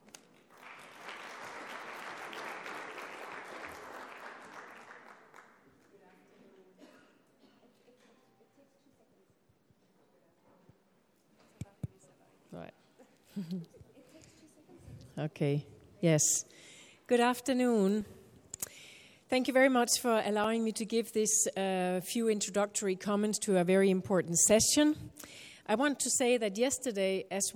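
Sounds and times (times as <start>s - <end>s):
audience applause: 0.3s - 5.6s
speech: 13.4s - 13.8s, 15.2s - 18.2s, 19.3s - 27.5s.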